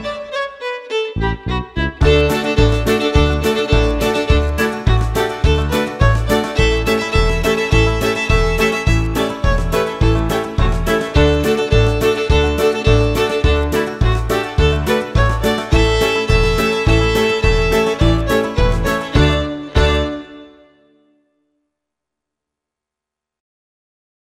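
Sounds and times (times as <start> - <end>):
double stop shuffle: 2.0 - 20.1.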